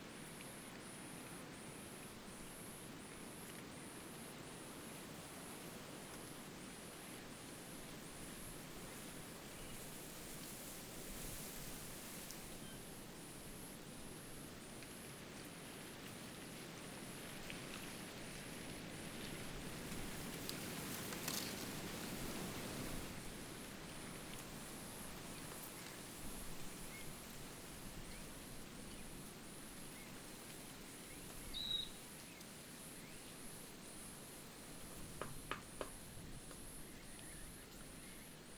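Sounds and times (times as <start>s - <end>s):
cicadas: 0.0s - 38.5s
wind in leaves: 5.2s - 38.5s.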